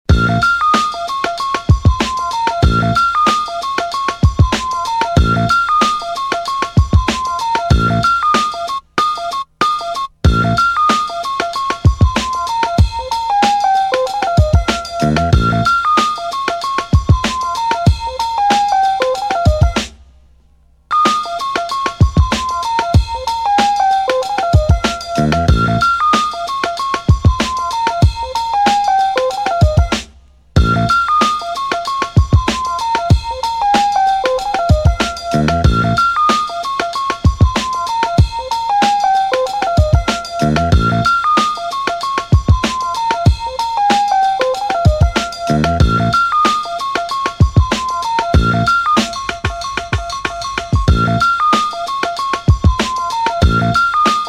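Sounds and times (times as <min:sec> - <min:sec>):
instrumental music: 0:00.1 - 0:54.2.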